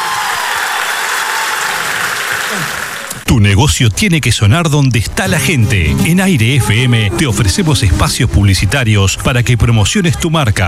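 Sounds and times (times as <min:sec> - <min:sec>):
audience applause: 0:00.0 - 0:03.2
speech: 0:02.5 - 0:10.6.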